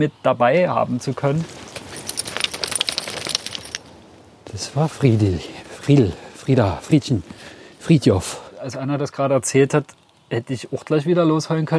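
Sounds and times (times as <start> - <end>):
speech: 0.0 - 1.7, 4.5 - 11.7
metallic jingling: 1.4 - 4.0
dog shaking its flapping ears: 1.6 - 3.8.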